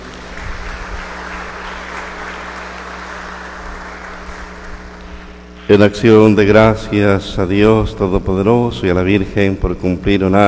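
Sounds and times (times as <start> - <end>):
applause: 0.0 - 5.4
speech: 5.7 - 10.4.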